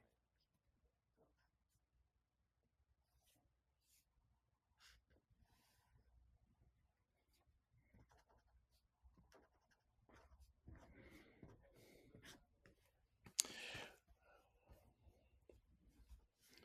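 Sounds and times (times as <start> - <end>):
pen or pencil scratching on paper drawing a mask: 3.0 - 6.1, 7.2 - 13.2, 14.0 - 16.6.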